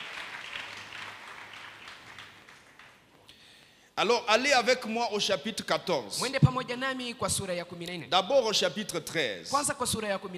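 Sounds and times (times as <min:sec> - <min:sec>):
church congregation applause: 0:00.0 - 0:03.2
speech: 0:04.0 - 0:10.3.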